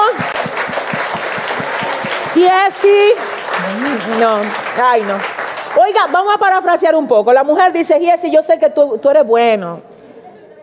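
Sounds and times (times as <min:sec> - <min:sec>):
audience applause: 0:00.0 - 0:06.4
speech: 0:02.4 - 0:09.9.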